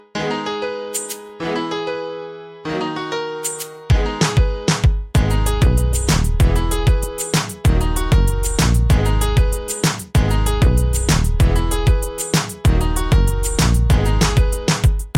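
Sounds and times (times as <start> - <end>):
piano: 0.0 - 15.1.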